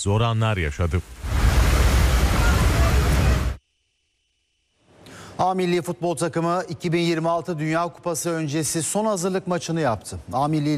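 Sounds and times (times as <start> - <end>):
speech: 0.0 - 1.4, 5.5 - 10.7
heavy rain downpour: 0.6 - 3.6.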